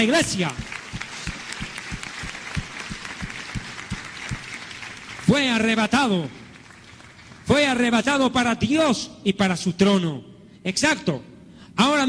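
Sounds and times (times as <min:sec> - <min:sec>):
speech: 0:00.0 - 0:00.7, 0:05.3 - 0:06.4, 0:07.5 - 0:12.0
audience applause: 0:00.3 - 0:07.5.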